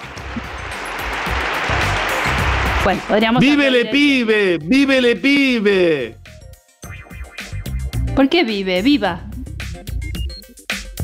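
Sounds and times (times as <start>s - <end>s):
applause: 0.0s - 4.3s
speech: 2.8s - 6.2s, 8.2s - 9.3s.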